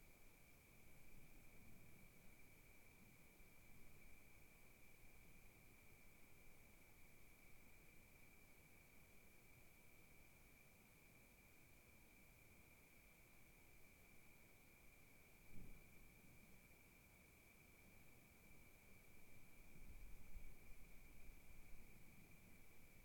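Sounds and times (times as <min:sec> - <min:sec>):
night crickets chirping at Kiger Lookout in Oregon wilderness: 0:00.0 - 0:23.0.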